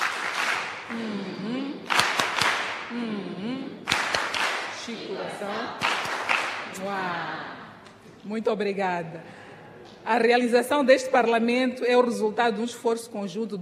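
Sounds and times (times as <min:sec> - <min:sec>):
children clapping: 0:00.0 - 0:01.1, 0:01.8 - 0:02.9, 0:03.8 - 0:04.9, 0:05.8 - 0:06.8
speech: 0:04.9 - 0:05.9, 0:06.7 - 0:07.5, 0:08.2 - 0:09.4, 0:10.0 - 0:13.5.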